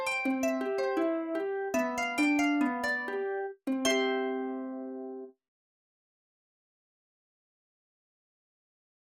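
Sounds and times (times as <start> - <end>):
harp rondo: 0.0 - 5.3.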